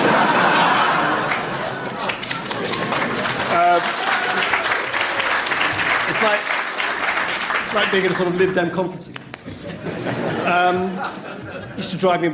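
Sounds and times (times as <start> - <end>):
laughter: 0.0 - 4.6, 9.4 - 12.0
audience applause: 0.0 - 8.7
speech: 7.8 - 12.3.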